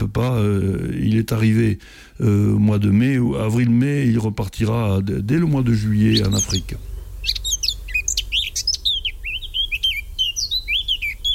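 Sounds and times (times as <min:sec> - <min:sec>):
low steady rumble: 0:00.0 - 0:11.3
speech: 0:00.2 - 0:07.4
Eurasian blackcap singing: 0:03.7 - 0:11.3.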